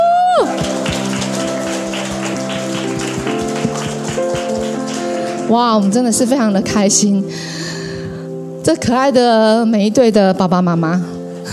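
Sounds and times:
crowd applauding: 0.2s - 6.4s
sustained musical tones: 0.4s - 6.7s
speech: 5.5s - 7.6s, 8.7s - 11.5s.

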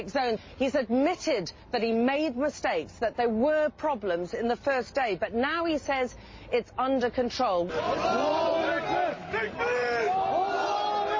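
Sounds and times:
speech: 0.0s - 9.8s
crowd shouting: 7.7s - 11.1s.

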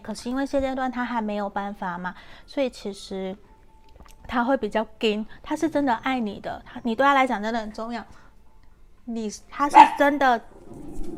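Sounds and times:
speech: 0.0s - 3.5s, 4.3s - 8.2s, 9.1s - 11.1s
small pet dog barking: 9.7s - 10.2s.

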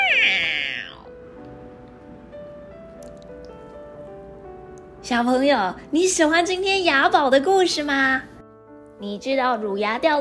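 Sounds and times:
cat meowing: 0.0s - 1.1s
speech: 5.1s - 8.3s, 9.0s - 10.1s.

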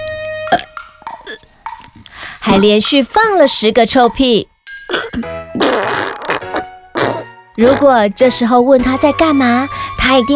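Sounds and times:
loud burp: 0.5s - 0.7s, 4.9s - 7.9s
speech: 2.4s - 4.5s, 7.6s - 10.3s.

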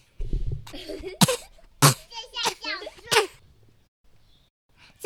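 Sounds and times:
speech: 0.8s - 1.4s
child coughing: 0.8s - 3.4s.

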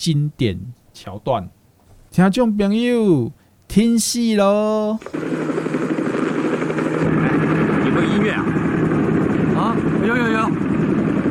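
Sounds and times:
speech: 0.0s - 5.8s, 8.0s - 8.6s, 9.8s - 10.9s
helicopter rotor drone: 4.0s - 11.3s.

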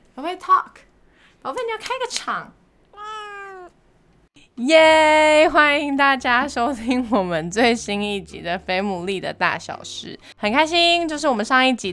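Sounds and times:
speech: 0.2s - 2.6s, 4.6s - 11.9s
cat meowing: 3.0s - 3.8s.

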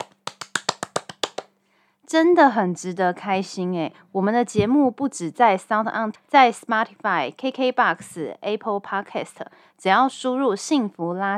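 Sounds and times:
fancy clapping: 0.0s - 1.6s
speech: 2.1s - 11.3s.

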